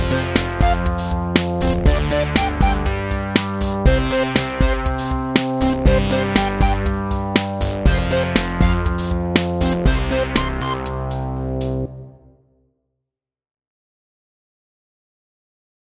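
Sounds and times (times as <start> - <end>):
keytar groove: 0.0 - 12.0.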